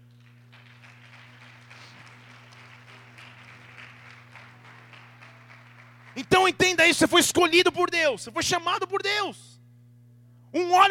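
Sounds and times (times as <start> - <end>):
constant low electrical hum: 0.0 - 10.8
audience applauding: 0.2 - 6.9
speech: 6.2 - 9.5, 10.5 - 10.8.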